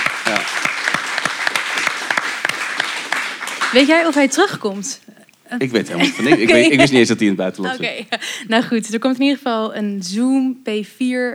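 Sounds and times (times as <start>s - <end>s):
audience applause: 0.0s - 4.5s
speech: 0.3s - 0.6s, 3.7s - 11.3s
laughter: 5.7s - 8.9s.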